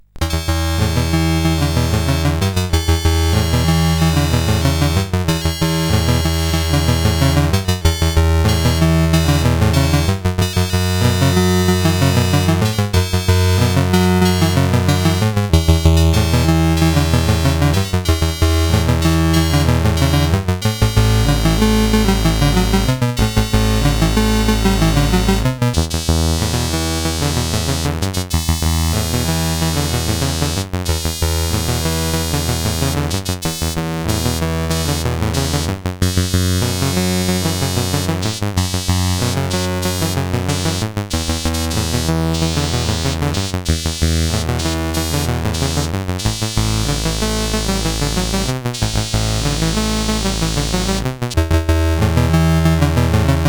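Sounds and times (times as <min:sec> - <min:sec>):
MOS 8580 SID chip game music: 0:00.2 - 0:53.4.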